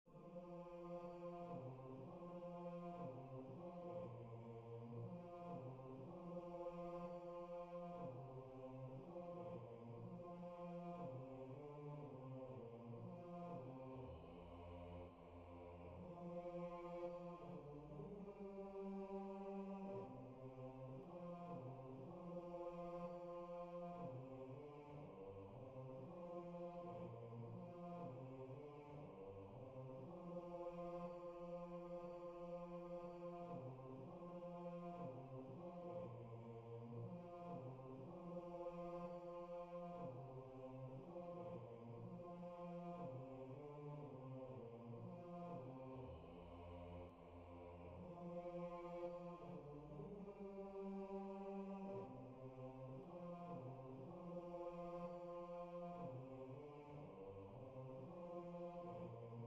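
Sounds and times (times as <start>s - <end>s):
bass: 0.0s - 59.4s.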